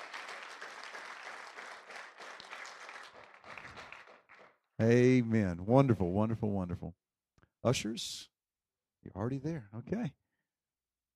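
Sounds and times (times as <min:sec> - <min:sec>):
audience applause: 0:00.0 - 0:04.6
speech: 0:04.8 - 0:07.0, 0:07.6 - 0:08.3, 0:09.0 - 0:10.2.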